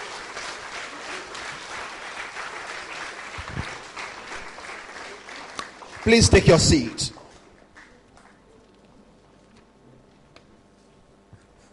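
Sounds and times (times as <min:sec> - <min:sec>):
large crowd clapping and applauding: 0:00.0 - 0:08.4
speech: 0:06.0 - 0:07.2.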